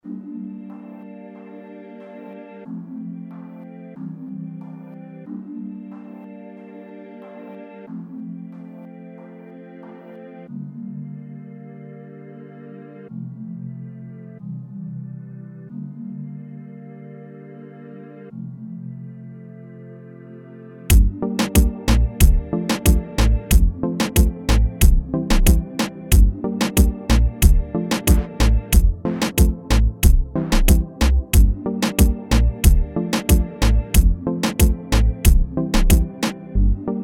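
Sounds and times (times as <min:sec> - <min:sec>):
reggaeton beat: 0:20.9 - 0:37.0.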